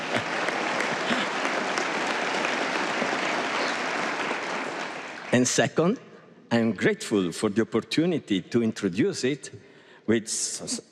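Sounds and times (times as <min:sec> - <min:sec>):
audience applause: 0:00.0 - 0:05.5
speech: 0:05.4 - 0:10.9.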